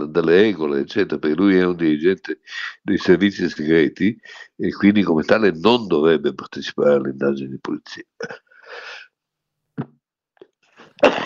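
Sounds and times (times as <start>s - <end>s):
speech: 0.0s - 9.0s
heavy cough: 8.2s - 8.5s, 10.8s - 11.2s.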